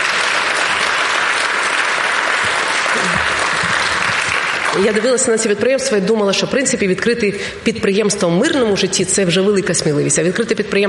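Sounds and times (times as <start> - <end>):
audience applause: 0.0 - 5.3
speech: 4.8 - 10.8.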